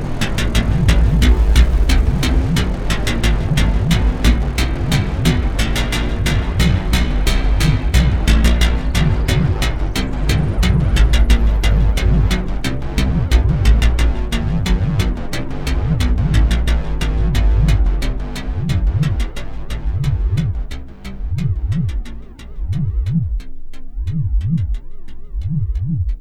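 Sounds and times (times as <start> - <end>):
synthesizer sound effects: 0.0 - 26.1.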